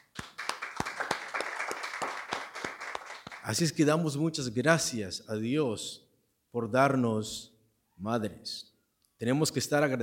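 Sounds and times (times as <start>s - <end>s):
audience clapping hands: 0.0s - 3.7s
speech: 3.5s - 10.0s.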